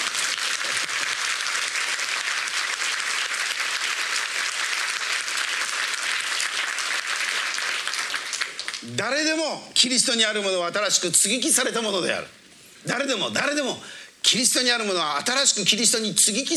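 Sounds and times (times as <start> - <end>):
audience applause: 0.0 - 8.9
speech: 9.0 - 16.5.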